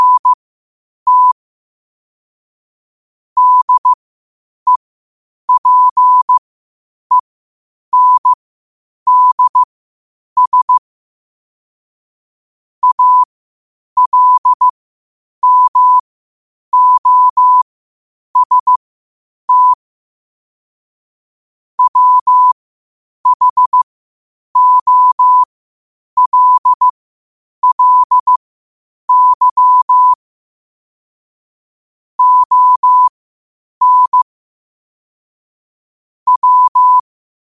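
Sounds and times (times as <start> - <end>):
morse code at 5 wpm: 0.0 - 0.4, 1.1 - 1.4, 3.4 - 4.0, 5.5 - 6.4, 7.9 - 8.4, 9.1 - 9.7, 10.4 - 10.8, 12.8 - 13.3, 14.0 - 14.7, 15.4 - 16.0, 16.7 - 17.6, 18.4 - 18.8, 19.5 - 19.8, 21.8 - 22.6, 23.2 - 23.8, 24.6 - 25.5, 26.2 - 26.9, 27.6 - 28.4, 29.1 - 30.2, 32.2 - 33.2, 33.8 - 34.3, 36.3 - 37.0.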